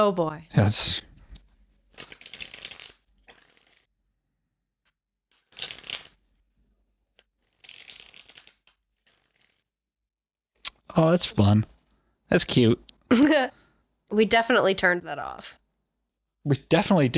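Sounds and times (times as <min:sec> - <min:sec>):
speech: 0:00.0 - 0:01.1, 0:10.9 - 0:11.7, 0:12.3 - 0:15.6, 0:16.4 - 0:17.1
tarot deck being shuffled: 0:01.3 - 0:03.9, 0:05.3 - 0:06.3, 0:07.1 - 0:09.7.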